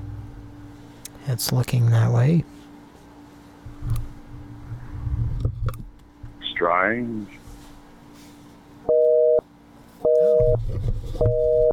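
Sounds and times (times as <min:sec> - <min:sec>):
speech: 0:01.2 - 0:02.7, 0:06.6 - 0:07.4
out-of-rhythm telephone busy signal: 0:08.9 - 0:09.4, 0:10.0 - 0:10.6, 0:11.2 - 0:11.7.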